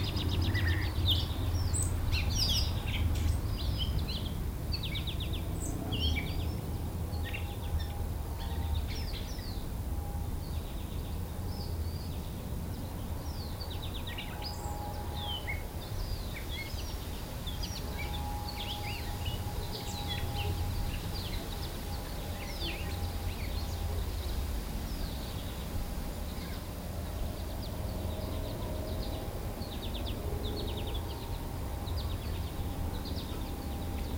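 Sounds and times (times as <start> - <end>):
birds in a backyard: 0.0 - 34.1
road traffic: 0.0 - 34.1
wind in trees: 0.0 - 34.1.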